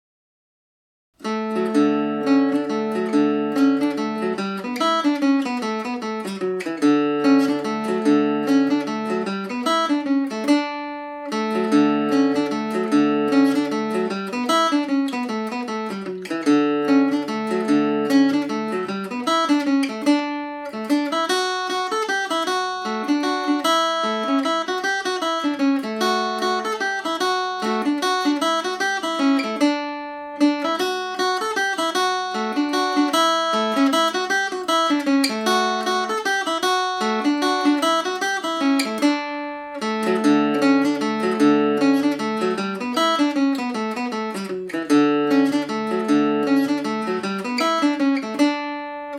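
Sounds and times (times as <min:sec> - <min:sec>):
Irish mandolin playing in D major: 0:01.2 - 0:49.1.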